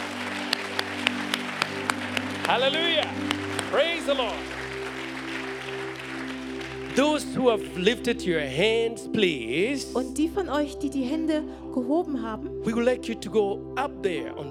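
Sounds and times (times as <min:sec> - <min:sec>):
applause: 0:00.0 - 0:08.6
speech: 0:02.5 - 0:04.6, 0:07.0 - 0:14.4.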